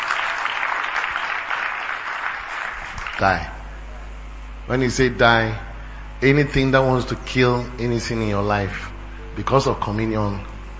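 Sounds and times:
audience clapping: 0.0s - 3.5s
speech: 3.2s - 3.5s, 4.7s - 10.5s.

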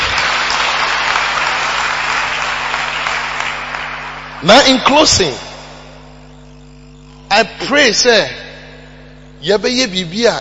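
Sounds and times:
audience clapping: 0.0s - 4.9s
low hum: 0.0s - 10.3s
speech: 4.4s - 5.4s, 7.4s - 8.4s, 9.4s - 10.3s.

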